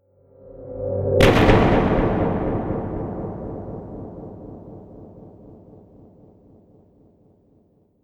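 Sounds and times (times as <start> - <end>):
impact sound effect: 1.2 - 6.6.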